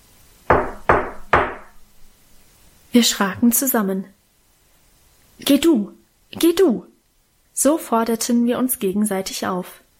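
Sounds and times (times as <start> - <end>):
knocking on a front door: 0.5 - 1.8
speech: 2.9 - 4.2, 5.4 - 6.9, 7.6 - 9.8.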